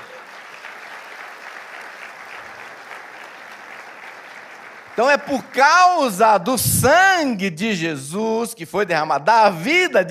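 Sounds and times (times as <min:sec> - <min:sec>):
audience applauding: 0:00.0 - 0:06.5
speech: 0:05.0 - 0:10.0.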